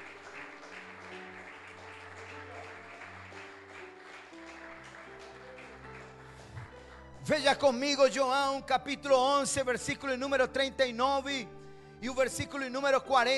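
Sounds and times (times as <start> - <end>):
audience applause: 0.0 - 7.2
sustained keyboard chords: 0.0 - 13.3
speech: 7.3 - 13.3.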